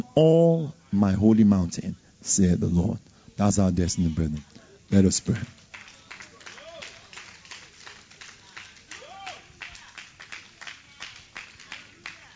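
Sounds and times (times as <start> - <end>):
speech: 0.0 - 5.6
audience clapping in a steady fast rhythm: 4.0 - 12.3
vocal whoops and shouts: 9.0 - 9.6.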